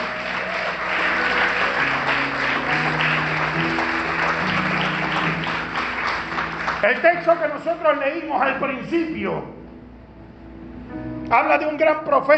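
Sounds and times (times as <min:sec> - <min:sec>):
audience applause: 0:00.0 - 0:08.1
low sustained musical tones: 0:00.0 - 0:12.2
speech: 0:06.8 - 0:09.6, 0:11.3 - 0:12.3.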